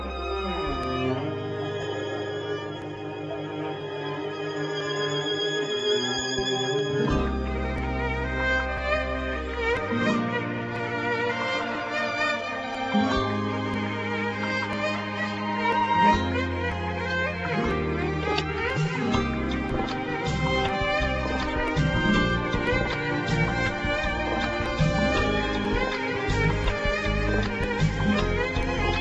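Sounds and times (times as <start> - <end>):
romantic music: 0.0 - 29.0.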